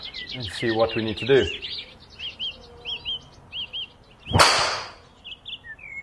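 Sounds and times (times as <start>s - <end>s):
birds chirping: 0.0s - 6.0s
speech: 0.3s - 1.9s
golf driver striking a ball during a practice session: 4.3s - 5.0s.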